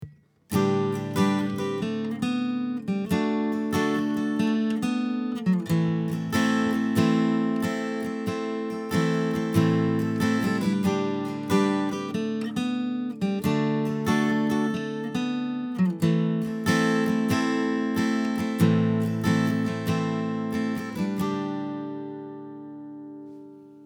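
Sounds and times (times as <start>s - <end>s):
guitar: 0.0s - 23.8s.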